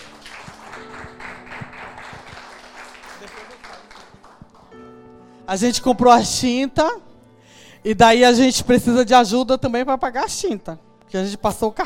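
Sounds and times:
audience applause: 0.0s - 4.8s
speech: 5.5s - 7.1s, 7.8s - 11.8s.

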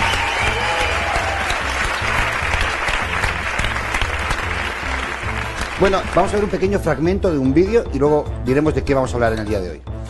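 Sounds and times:
crowd applauding: 0.0s - 7.0s
speech: 5.8s - 9.9s.

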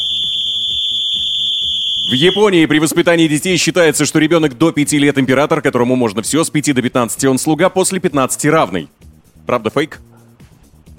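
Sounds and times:
whistle signalling start of quiz round: 0.0s - 2.7s
speech: 2.1s - 10.1s.

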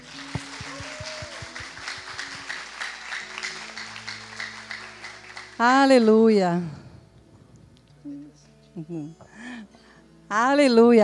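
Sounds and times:
round of applause: 0.0s - 6.1s
speech: 5.6s - 6.8s, 8.9s - 9.3s, 10.3s - 11.0s.

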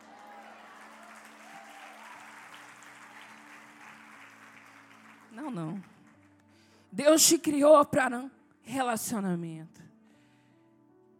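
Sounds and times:
audience applause: 0.0s - 6.3s
speech: 5.4s - 5.9s, 6.9s - 9.8s.

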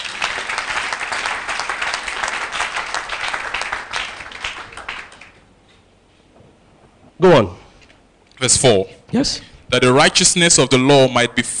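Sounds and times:
audience clapping: 0.0s - 5.6s
speech: 7.2s - 7.6s, 8.4s - 11.5s.

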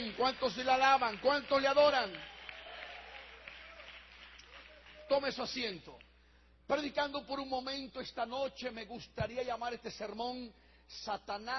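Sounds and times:
audience clapping: 0.0s - 5.8s
speech: 0.2s - 2.3s, 5.1s - 6.1s, 6.7s - 11.5s.

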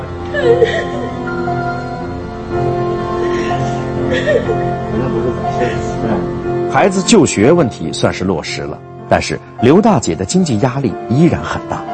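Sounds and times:
woman sobbing: 0.2s - 6.4s
speech: 0.3s - 1.0s, 6.8s - 11.9s.

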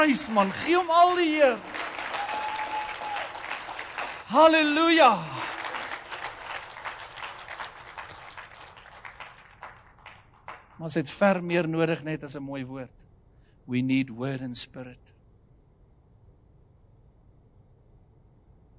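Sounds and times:
speech: 0.0s - 1.9s, 4.3s - 5.4s, 10.8s - 13.0s, 13.7s - 15.1s
audience applause: 0.0s - 10.8s.

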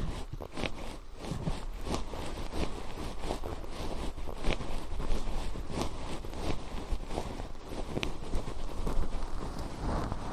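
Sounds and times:
crackles and soft taps: 0.0s - 10.3s
fluffy ear cleaning brushing and rustling: 0.0s - 10.3s.

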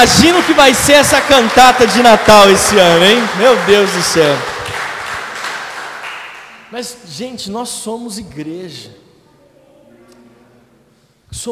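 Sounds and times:
speech: 0.0s - 4.5s, 6.7s - 9.0s
crowd applauding for a choir: 0.0s - 6.8s.

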